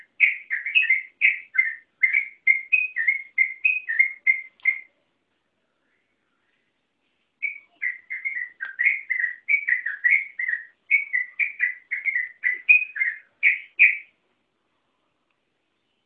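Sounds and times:
yellow-vented bulbul song of warbled whistled notes: 0:00.0 - 0:05.0, 0:07.4 - 0:14.2.

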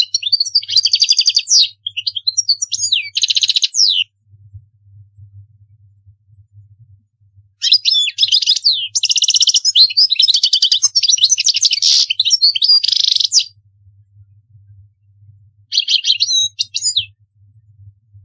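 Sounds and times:
European goldfinch song: 0:00.0 - 0:05.0, 0:07.6 - 0:13.6, 0:15.6 - 0:17.8.

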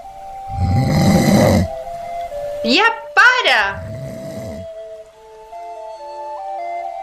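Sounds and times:
person snoring with a deep rattling rumble: 0:00.5 - 0:01.8, 0:03.8 - 0:04.8
speech: 0:02.6 - 0:03.8.

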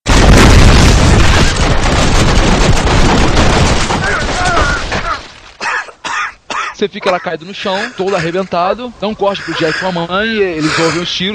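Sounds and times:
video game machine-gun fire from enemies shooting at the player: 0:00.1 - 0:04.6
speech: 0:06.8 - 0:11.3.

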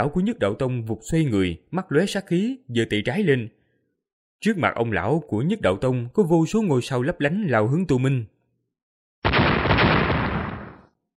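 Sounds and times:
speech: 0:00.0 - 0:03.6, 0:04.4 - 0:08.3
deafening explosion sound effect: 0:09.2 - 0:10.9.

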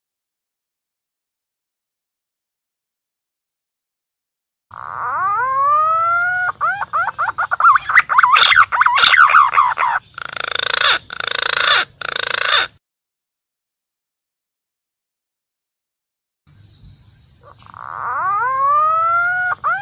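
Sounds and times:
green pigeon calling: 0:04.7 - 0:12.8, 0:17.2 - 0:19.7.

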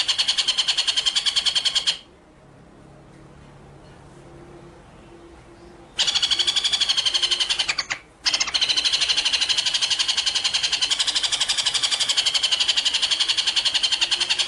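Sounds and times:
white-rumped shama trilling: 0:00.0 - 0:02.1, 0:06.0 - 0:14.4.

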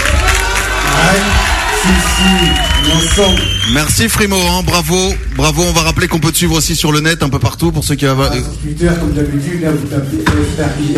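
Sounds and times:
crowd cheering and shouting for a rapper: 0:00.0 - 0:05.0
speech: 0:01.8 - 0:10.9.

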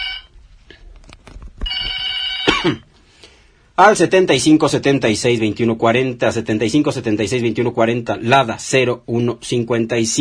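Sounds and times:
telephone ringing: 0:00.0 - 0:00.4, 0:01.6 - 0:02.9
speech: 0:02.6 - 0:02.9, 0:03.8 - 0:10.2.

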